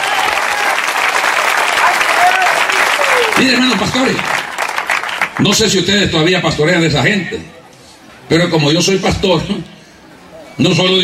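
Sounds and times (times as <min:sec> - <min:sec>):
audience applause: 0:00.0 - 0:05.8
faint voices and shouts: 0:01.8 - 0:03.7
speech: 0:03.4 - 0:04.4, 0:05.4 - 0:07.6, 0:08.3 - 0:09.7, 0:10.6 - 0:11.0.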